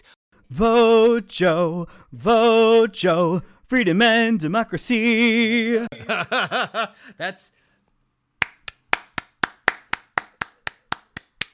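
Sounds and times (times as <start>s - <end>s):
speech: 0.5s - 7.6s
laughter: 5.8s - 7.1s
hands clapping: 8.4s - 11.5s.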